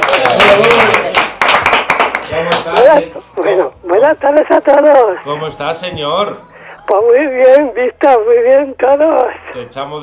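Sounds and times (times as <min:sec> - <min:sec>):
applause: 0:00.0 - 0:02.9
speech: 0:03.0 - 0:10.0.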